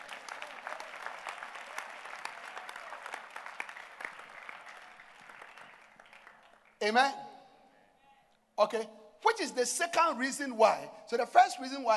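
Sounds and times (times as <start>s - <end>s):
church congregation clapping hands for the Lord: 0.0s - 7.0s
speech: 6.8s - 7.2s, 8.6s - 11.9s.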